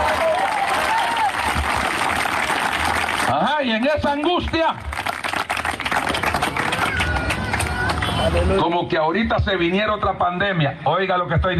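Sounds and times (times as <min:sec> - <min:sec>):
audience applauding: 0:00.0 - 0:08.5
speech: 0:03.6 - 0:04.9, 0:08.2 - 0:11.5.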